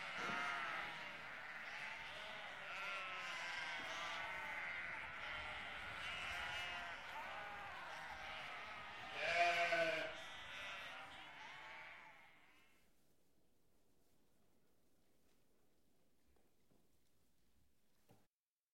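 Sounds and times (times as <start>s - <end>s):
several sheep bleating: 0.0s - 12.8s.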